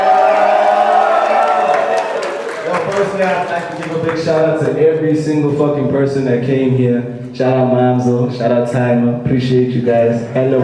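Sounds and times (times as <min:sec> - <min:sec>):
loud crowd cheering and yelling: 0:00.0 - 0:04.1
scattered claps: 0:00.0 - 0:04.9
speech: 0:03.1 - 0:10.6.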